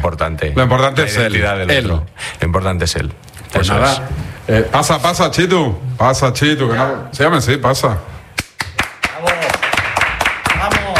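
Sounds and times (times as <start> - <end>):
speech: 0.0 - 8.2
applause sound effect: 8.4 - 10.9.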